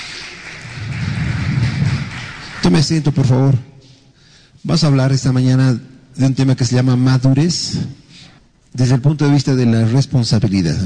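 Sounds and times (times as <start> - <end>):
audience applause: 0.0 - 3.1
speech: 2.6 - 3.7, 4.6 - 8.0, 8.7 - 10.8.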